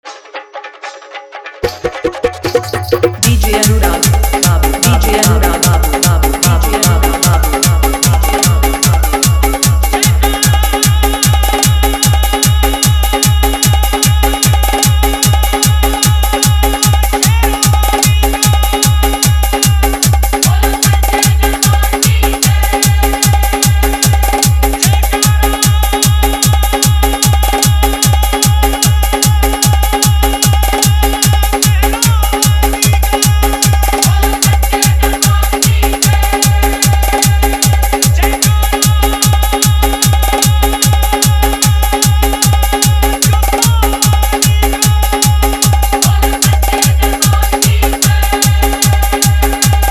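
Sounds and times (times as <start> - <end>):
hard bass: 2.4 - 49.8.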